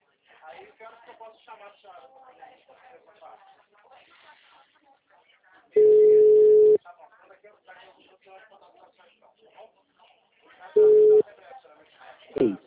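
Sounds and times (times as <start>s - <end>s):
speech: 1.0s - 5.0s
telephone busy tone after a dropped call: 5.8s - 6.8s, 10.8s - 11.2s.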